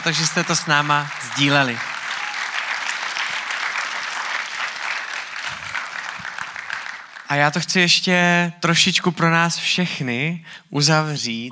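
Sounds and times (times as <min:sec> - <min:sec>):
speech: 0:00.0 - 0:01.9, 0:07.3 - 0:11.4
audience applause: 0:00.0 - 0:07.6.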